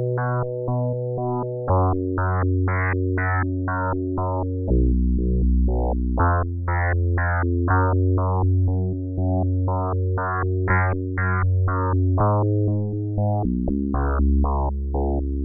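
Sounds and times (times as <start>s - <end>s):
synth bass: 0.0s - 15.4s.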